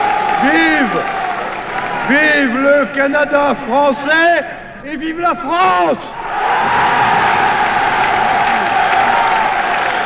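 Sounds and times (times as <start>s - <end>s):
crowd cheering and applauding: 0.0s - 3.1s, 6.2s - 10.0s
speech: 0.4s - 1.2s, 2.1s - 6.8s.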